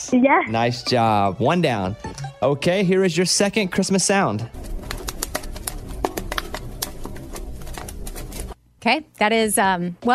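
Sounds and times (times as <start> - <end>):
speech: 0.1 - 4.8, 8.8 - 10.1
fire crackling: 4.5 - 8.6.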